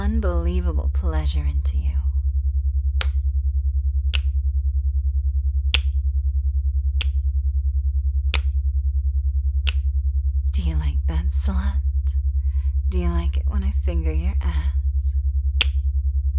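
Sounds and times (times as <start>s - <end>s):
low steadily pulsing drone: 0.0s - 16.3s
speech: 0.2s - 2.1s, 11.4s - 11.9s, 12.9s - 14.8s
sharp finger snaps: 3.0s - 3.2s, 4.1s - 4.3s, 5.7s - 6.0s, 7.0s - 7.2s, 8.3s - 8.6s, 15.6s - 15.8s.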